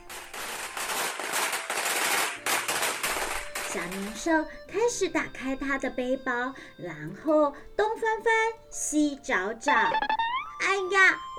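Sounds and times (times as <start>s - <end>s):
string of firecrackers crackling and popping: 0.0s - 7.1s, 9.6s - 11.3s
speech: 3.7s - 11.3s.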